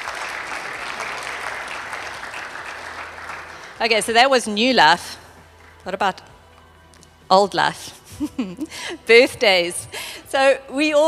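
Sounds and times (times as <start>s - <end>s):
audience applause: 0.0s - 3.9s
speech: 3.8s - 5.2s, 5.8s - 6.3s, 7.3s - 11.0s.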